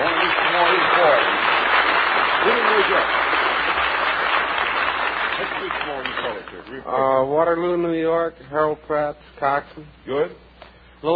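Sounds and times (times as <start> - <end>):
crowd cheering and clapping: 0.0 - 6.7
speech: 6.7 - 10.4, 11.0 - 11.1.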